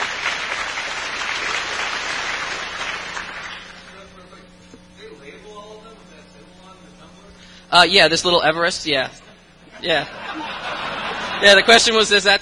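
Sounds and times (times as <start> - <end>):
crowd clapping: 0.0 - 4.1
speech: 7.7 - 9.2, 9.8 - 10.6, 11.4 - 12.3
laughter: 9.6 - 12.1.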